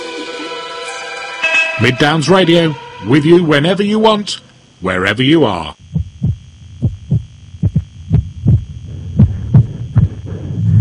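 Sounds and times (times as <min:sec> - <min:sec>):
faint steady hum: 0:00.0 - 0:10.8
speech: 0:01.8 - 0:05.8
irregular heartbeat thumps: 0:05.8 - 0:10.8.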